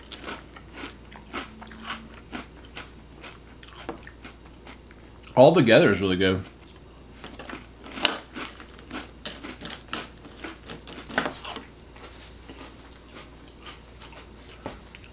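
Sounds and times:
chewing crunchy cereal soaked in milk: 0.0s - 5.4s, 6.4s - 15.1s
speech: 5.4s - 6.5s.

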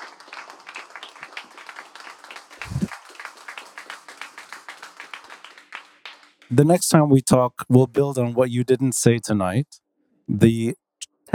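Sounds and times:
round of applause: 0.0s - 6.5s
speech: 6.5s - 11.3s.

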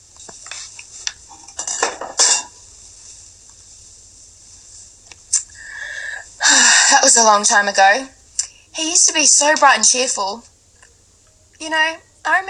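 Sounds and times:
steady hissing tone: 0.0s - 12.4s
metal cookware clinking and scraping: 1.5s - 2.5s
speech: 7.0s - 8.2s, 8.8s - 10.5s, 11.6s - 12.4s.

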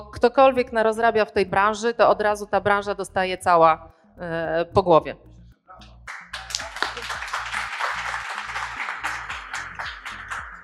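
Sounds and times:
speech: 0.0s - 5.3s
crowd applause: 6.1s - 10.6s.

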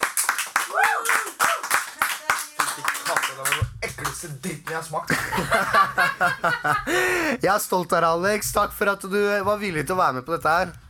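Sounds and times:
small group hand claps: 0.0s - 4.9s
speech: 4.2s - 10.8s
laughter: 5.1s - 7.4s.

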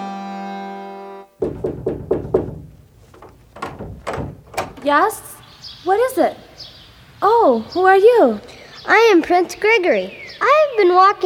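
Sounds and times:
speech: 1.4s - 2.4s, 4.8s - 11.2s
knocking on a cottage door: 1.4s - 4.9s.

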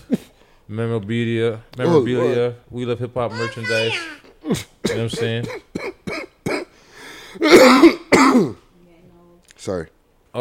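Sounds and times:
speech: 0.7s - 5.9s, 7.4s - 8.6s, 9.6s - 10.4s
person coughing: 4.4s - 6.8s, 7.4s - 8.6s.

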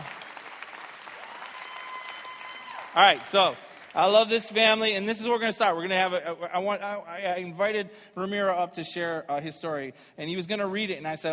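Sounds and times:
crowd clapping: 0.0s - 5.1s
speech: 3.0s - 11.3s.

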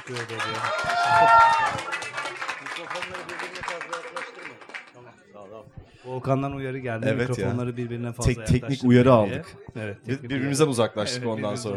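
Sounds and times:
audience applause: 0.0s - 5.1s
speech: 0.1s - 2.1s, 2.8s - 11.7s.

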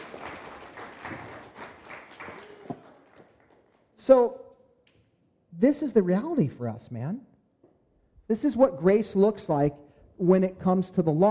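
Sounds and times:
audience applause: 0.0s - 3.8s
speech: 4.0s - 4.5s, 5.6s - 7.3s, 8.3s - 11.3s.

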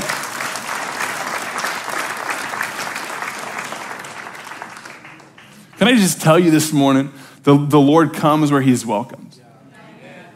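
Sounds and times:
church congregation applauding its students: 0.0s - 6.7s
speech: 5.8s - 9.3s.

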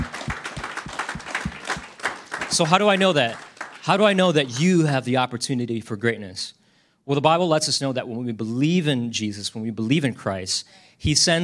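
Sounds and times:
audience clapping hands: 0.0s - 4.9s
speech: 2.5s - 11.4s.

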